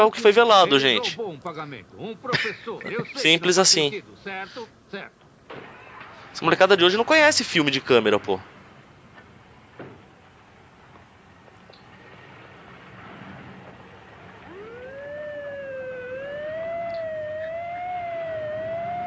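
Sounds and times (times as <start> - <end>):
speech: 0.0 - 5.7, 6.4 - 8.5
laughter: 2.0 - 3.4
ambulance siren: 14.1 - 19.0.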